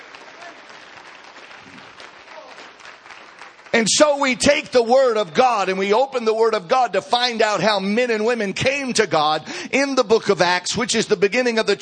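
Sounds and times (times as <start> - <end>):
audience clapping hands: 0.0 - 4.7
speech: 3.8 - 11.8.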